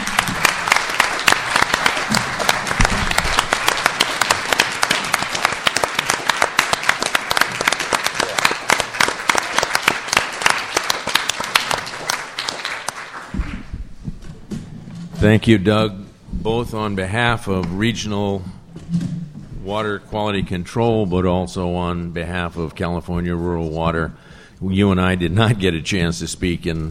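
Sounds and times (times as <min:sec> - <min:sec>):
audience applause: 0:00.0 - 0:13.7
speech: 0:15.3 - 0:19.0, 0:19.7 - 0:26.9.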